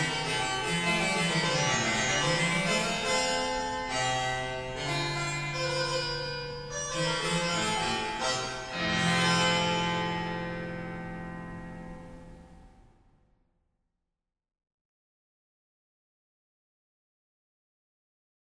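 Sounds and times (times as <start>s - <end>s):
harpsichord concerto: 0.0s - 12.2s.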